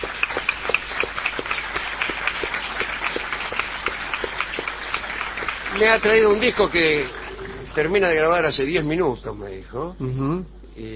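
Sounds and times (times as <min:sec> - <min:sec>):
audience applause: 0:00.0 - 0:08.2
speech: 0:05.8 - 0:07.2, 0:07.8 - 0:10.9.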